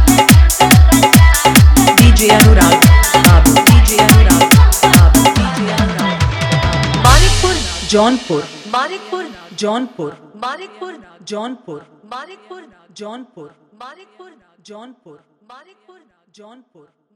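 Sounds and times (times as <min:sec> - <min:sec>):
old Bhojpuri dholki bass dance mix: 0:00.0 - 0:09.7.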